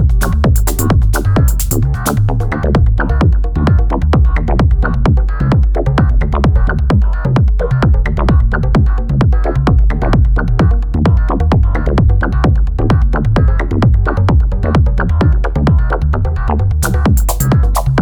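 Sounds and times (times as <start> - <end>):
drum machine with EQ and compression: 0.0 - 16.0, 16.8 - 18.0.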